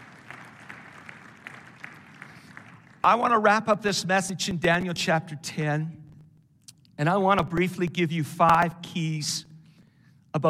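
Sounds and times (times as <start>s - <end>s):
audience applause: 0.0s - 3.2s
speech: 3.0s - 6.0s, 7.0s - 9.5s.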